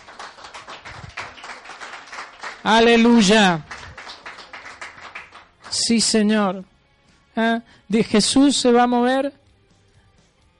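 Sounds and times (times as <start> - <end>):
audience applauding: 0.0 - 5.9
speech: 2.6 - 3.7, 5.9 - 6.7, 7.4 - 9.4.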